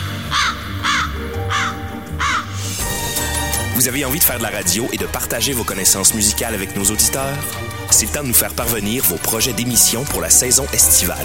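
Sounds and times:
birds cawing outdoors: 0:00.0 - 0:02.9
speech: 0:03.8 - 0:11.2.

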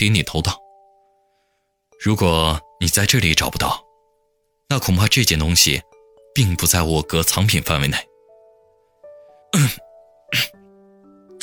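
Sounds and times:
speech: 0:00.0 - 0:00.6, 0:02.0 - 0:03.8, 0:04.7 - 0:08.1, 0:09.5 - 0:10.6
soft sustained music bed: 0:00.0 - 0:11.4
person clearing an itchy throat: 0:09.5 - 0:10.6.

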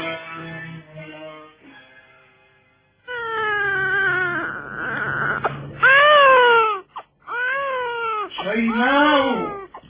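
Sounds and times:
baby crying from hunger: 0:03.1 - 0:09.8.

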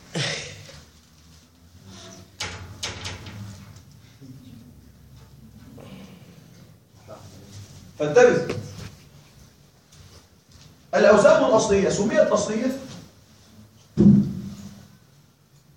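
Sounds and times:
low murmur of noise: 0:00.0 - 0:10.3
speech: 0:08.0 - 0:08.6, 0:11.1 - 0:12.9
door pushed shut during a lecture: 0:14.0 - 0:14.5.

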